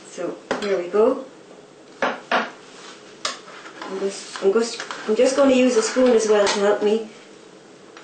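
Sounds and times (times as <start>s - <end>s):
speech: 0.2s - 1.3s, 3.9s - 7.2s
cake knife cutting a square piece of cake, scraping against the dish: 3.4s - 6.8s.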